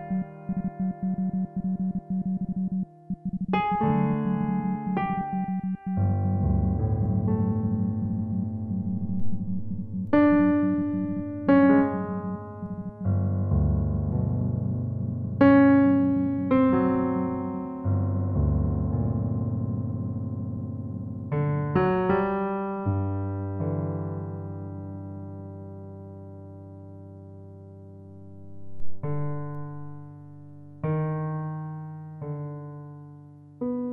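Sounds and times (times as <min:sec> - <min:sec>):
morse code beeps: 0:00.0 - 0:13.2
piano: 0:00.0 - 0:33.9.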